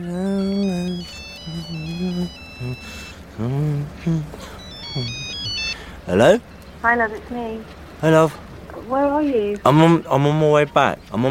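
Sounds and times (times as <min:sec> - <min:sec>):
lower sustained wavering tones: 0:00.0 - 0:06.4
phone electronic ringtone: 0:00.3 - 0:03.2, 0:04.5 - 0:06.0
speech: 0:06.1 - 0:11.2.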